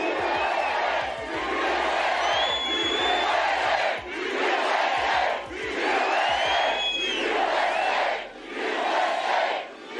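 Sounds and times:
rally crowd roaring and chanting: 0.0 - 9.9
whoops and whistles: 2.2 - 3.4, 6.2 - 7.9.

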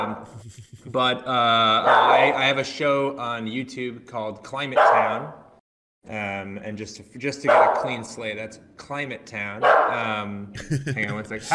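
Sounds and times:
dog barking: 0.0 - 0.4, 1.8 - 2.5, 4.8 - 5.4, 7.5 - 8.0, 9.6 - 10.1
laughter: 0.0 - 1.2, 10.6 - 11.5
speech: 0.0 - 5.4, 6.0 - 11.5.

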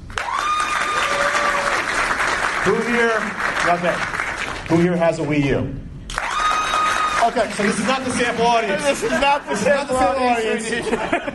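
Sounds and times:
audience applause: 0.1 - 4.8, 6.1 - 9.2
speech: 2.6 - 4.1, 4.7 - 5.9, 7.2 - 11.3
laughter: 7.6 - 11.3.

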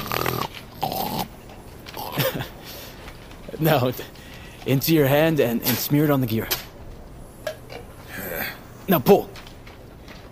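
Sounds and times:
person hawking up spit: 0.0 - 2.6
speech: 3.6 - 6.6, 8.9 - 9.3.

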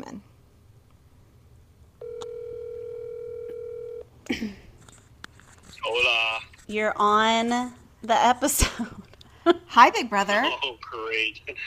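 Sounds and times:
telephone dial tone: 2.0 - 4.1
speech: 6.7 - 11.6.

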